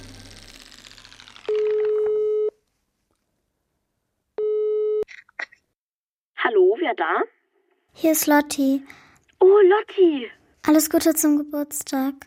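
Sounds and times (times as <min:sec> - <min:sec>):
telephone line tone after picking up: 0:01.5 - 0:02.6, 0:04.4 - 0:05.0
speech: 0:06.9 - 0:07.4, 0:08.0 - 0:12.2.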